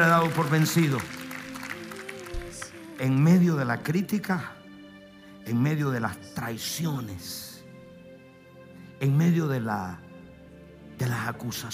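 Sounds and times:
speech: 0.0 - 1.2, 3.0 - 4.6, 5.4 - 7.5, 9.0 - 10.0, 11.0 - 11.7
audience applause: 0.0 - 3.2.

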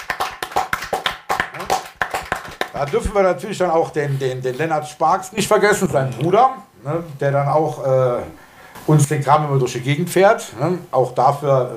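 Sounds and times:
applause of sharp crisp hand claps from a few people: 0.0 - 3.2
speech: 2.8 - 11.7.

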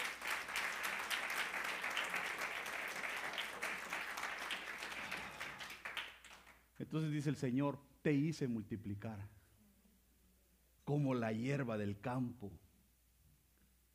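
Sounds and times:
audience applause: 0.0 - 6.6
speech: 6.8 - 9.4, 10.9 - 12.6.

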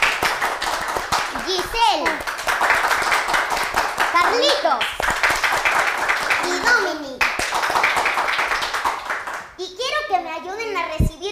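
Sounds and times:
audience clapping: 0.0 - 9.6
children's voices: 1.3 - 2.3, 4.1 - 5.0, 6.3 - 7.4, 9.6 - 11.3
child talking: 1.4 - 2.2, 4.1 - 4.9, 6.4 - 7.3, 9.6 - 11.3
speech: 1.5 - 2.3, 4.3 - 5.1.

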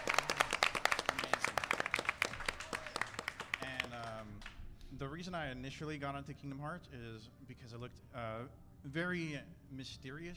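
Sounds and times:
crowd clapping: 0.0 - 4.6
speech: 5.0 - 10.3.

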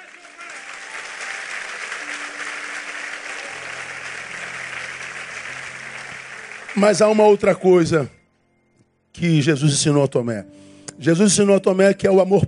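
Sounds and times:
audience applause: 0.0 - 7.6
speech: 6.8 - 8.2, 9.2 - 12.4.

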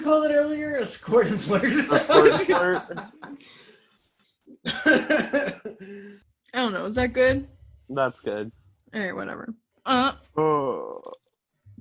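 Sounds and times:
speech: 0.1 - 3.6, 4.6 - 11.2
laughter: 0.8 - 3.7, 4.5 - 6.1
soft breathy intake: 5.7 - 6.2.

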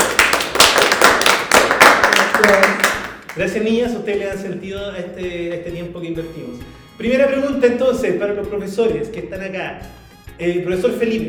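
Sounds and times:
applause: 0.0 - 3.5
speech: 2.4 - 2.8, 3.4 - 11.2.

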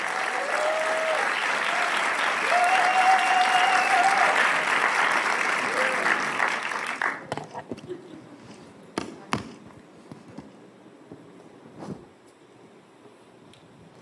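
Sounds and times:
audience applauding loudly: 0.0 - 7.6.

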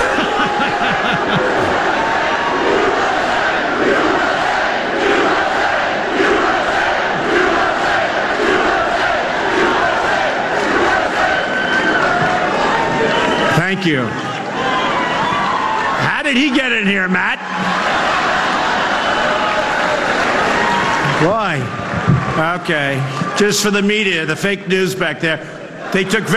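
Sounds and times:
laughter: 0.0 - 2.5
crowd booing: 0.0 - 23.8
speech: 13.8 - 14.2, 16.3 - 17.7, 22.4 - 26.3.

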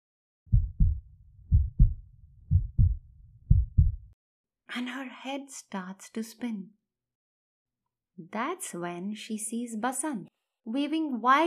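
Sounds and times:
loud pounding heartbeat: 0.5 - 4.1
speech: 4.7 - 6.8, 8.2 - 11.4.

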